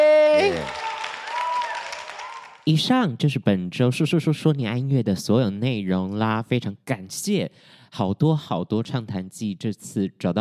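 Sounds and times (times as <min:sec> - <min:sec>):
audience applause: 0:00.2 - 0:02.6
speech: 0:02.6 - 0:10.3.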